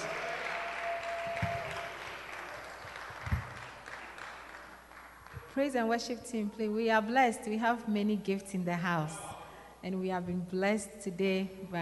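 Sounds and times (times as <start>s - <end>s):
people clapping: 0.0s - 5.6s
speech: 5.6s - 11.8s.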